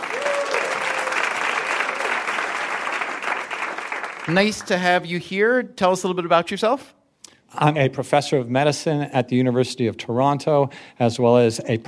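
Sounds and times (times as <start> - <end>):
game show audience applause: 0.0 - 4.8
speech: 4.3 - 11.8.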